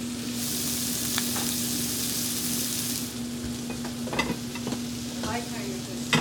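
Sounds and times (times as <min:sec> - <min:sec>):
herbs and shallots frying in a pan: 0:00.0 - 0:06.1.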